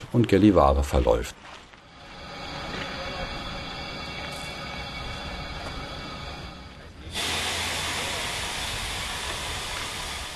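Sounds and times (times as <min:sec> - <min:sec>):
speech: 0:00.1 - 0:01.6
train being shunted: 0:02.1 - 0:10.3.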